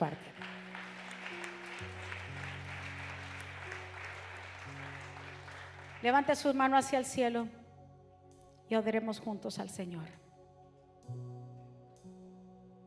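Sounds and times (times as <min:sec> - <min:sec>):
speech: 0:00.0 - 0:00.3, 0:06.0 - 0:07.6, 0:08.7 - 0:10.2
audience applause: 0:00.3 - 0:06.3.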